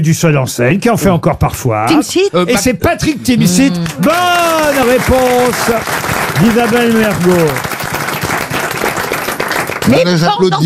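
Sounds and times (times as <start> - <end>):
speech: 0.0 - 7.8, 9.9 - 10.6
person clapping: 3.8 - 10.0.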